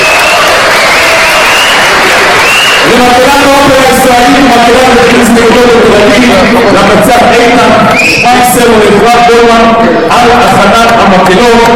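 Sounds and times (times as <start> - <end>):
audience applause: 0.0 - 3.6
speech: 3.0 - 3.2, 4.6 - 11.7.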